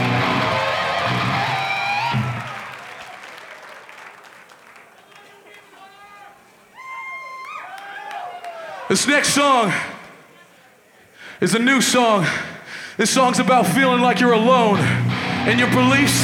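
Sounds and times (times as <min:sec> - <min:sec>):
concert crowd applauding: 0:00.0 - 0:08.9
speech: 0:08.9 - 0:09.9, 0:11.4 - 0:16.2.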